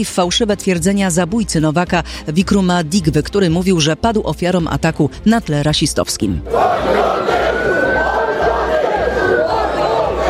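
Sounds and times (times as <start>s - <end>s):
speech: 0.0s - 7.4s
rioting crowd shouting: 6.5s - 10.2s
sustained high yell: 6.5s - 10.2s.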